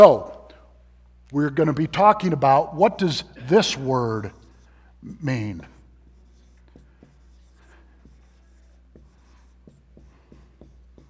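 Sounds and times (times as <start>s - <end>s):
speech: 0.0s - 0.3s, 1.3s - 4.4s, 5.0s - 5.7s
marker or chalk writing on a board during a church sermon: 3.6s - 11.0s.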